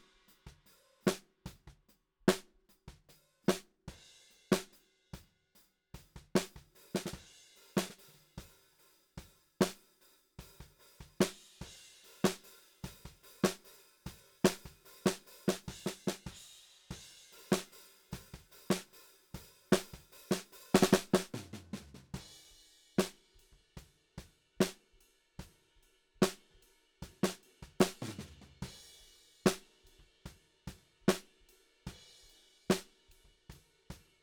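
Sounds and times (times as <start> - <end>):
snare drum: 0.0 - 1.7, 2.3 - 2.5, 3.5 - 3.7, 6.1 - 8.5, 9.6 - 9.8, 10.6 - 23.2, 26.2 - 26.4, 27.2 - 29.8, 31.1 - 31.3, 32.7 - 33.0.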